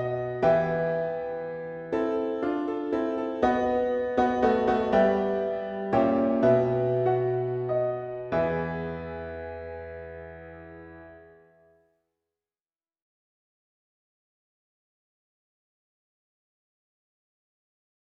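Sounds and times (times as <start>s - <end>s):
piano playing a mass setting: 0.0s - 11.5s.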